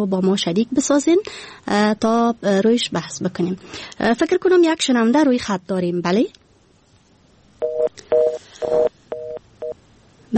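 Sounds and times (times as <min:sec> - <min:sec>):
speech: 0:00.0 - 0:06.4
telephone line tone beeping as a call drops: 0:07.6 - 0:09.8.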